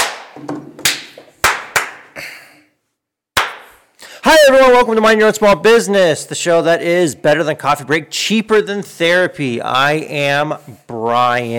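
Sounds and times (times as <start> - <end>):
hand claps for recording sync: 0.0 - 2.3, 3.4 - 3.8
speech: 4.5 - 11.5.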